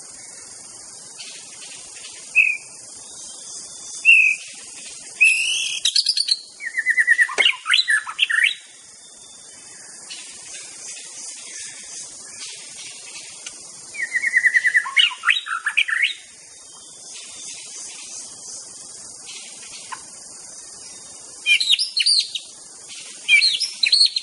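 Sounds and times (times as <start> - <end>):
wild white-rumped shama singing in forest: 2.3 - 2.7, 3.9 - 4.5, 5.2 - 8.7, 13.9 - 16.3, 21.4 - 22.5, 23.3 - 24.2.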